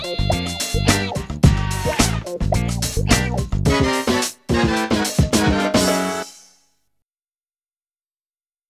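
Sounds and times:
funky demo music: 0:00.0 - 0:06.6.

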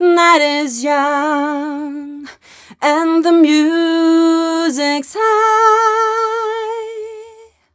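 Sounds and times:
female vocals: 0:00.0 - 0:07.7.

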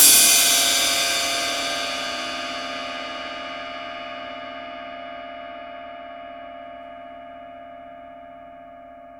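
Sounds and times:
impact drum hits: 0:00.0 - 0:02.2
cymbal hit: 0:00.0 - 0:03.6.

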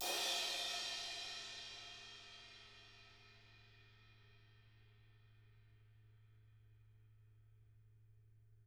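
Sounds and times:
18-inch crash cymbal: 0:00.0 - 0:04.6.

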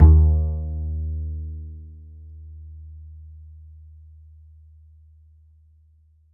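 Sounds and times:
upright acoustic bass in D: 0:00.0 - 0:05.0.

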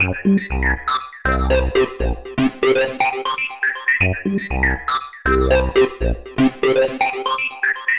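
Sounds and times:
acid synth sequence: 0:01.3 - 0:07.9.

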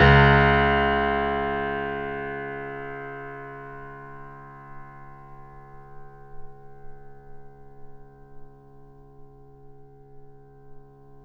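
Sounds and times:
grand piano note C sharp 1, mezzo forte, off mic: 0:00.0 - 0:05.1.

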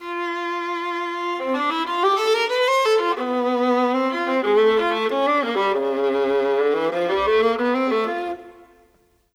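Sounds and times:
orchestral viola: 0:00.0 - 0:09.1.

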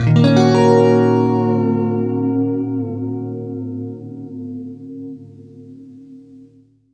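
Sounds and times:
guitar chords: 0:00.0 - 0:06.9.

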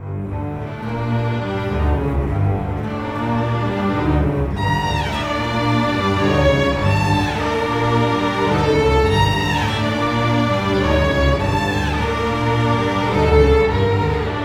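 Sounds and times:
cinematic orchestral strings: 0:00.0 - 0:14.4.

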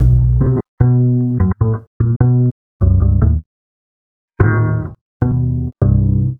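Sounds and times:
drum and bass beat: 0:00.0 - 0:00.6
upright bass: 0:00.0 - 0:03.4, 0:04.4 - 0:06.3.

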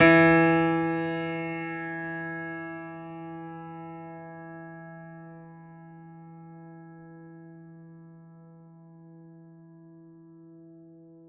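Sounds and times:
classical piano E3 note: 0:00.0 - 0:05.7.

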